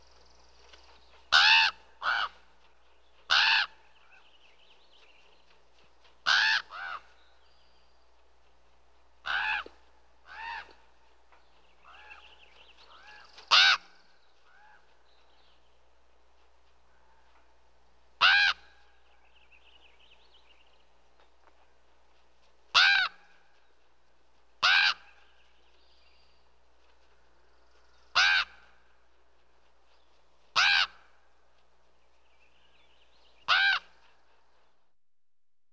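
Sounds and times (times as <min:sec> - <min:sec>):
common raven cawing: 0:01.3 - 0:02.4, 0:03.3 - 0:03.8, 0:06.3 - 0:07.1, 0:09.2 - 0:09.7, 0:10.3 - 0:10.8, 0:13.0 - 0:13.9, 0:18.2 - 0:18.7, 0:24.6 - 0:25.2, 0:28.1 - 0:28.8, 0:30.6 - 0:31.1, 0:33.5 - 0:34.0.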